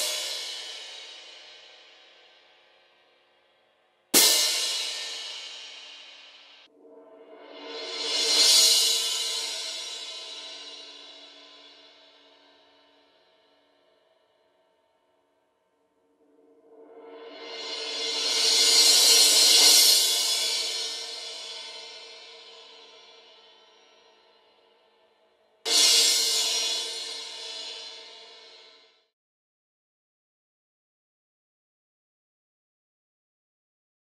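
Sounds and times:
crash cymbals: 0.0s - 2.9s, 4.2s - 13.5s, 16.4s - 24.7s, 25.7s - 29.0s.

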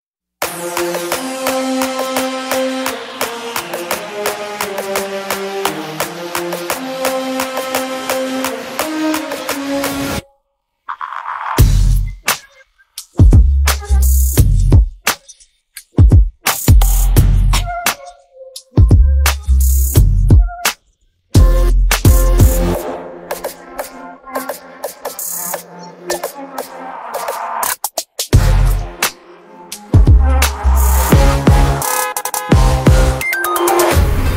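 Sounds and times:
instrumental music: 0.4s - 10.4s, 11.6s - 34.3s.

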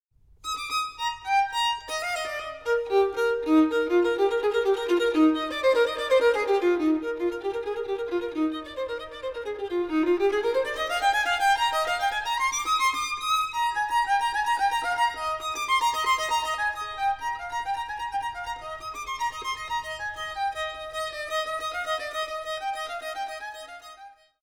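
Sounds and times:
violins: 0.4s - 24.2s.

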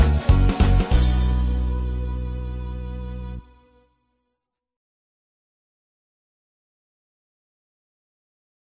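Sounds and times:
karaoke instrumental music: 0.0s - 3.8s.

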